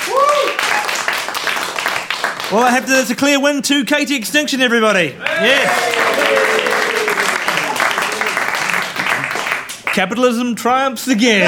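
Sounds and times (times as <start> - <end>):
whooping cheer: 0.0 - 1.1, 5.2 - 8.3
audience applause: 0.0 - 2.8, 5.2 - 10.0
speech: 2.5 - 6.6, 10.0 - 11.4.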